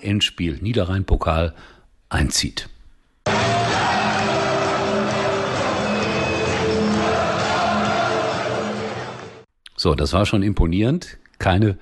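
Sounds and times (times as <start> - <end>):
speech: 0.0 - 2.7, 9.8 - 11.8
football stadium crowd of 25,000 cheering: 3.3 - 9.5.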